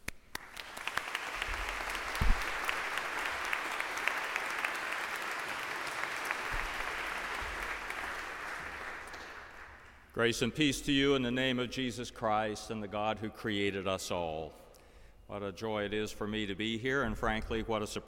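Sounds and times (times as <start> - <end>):
audience applause welcoming a bishop at a university baccalaureate service: 0.3 - 10.0
speech: 10.2 - 14.6, 15.3 - 18.0.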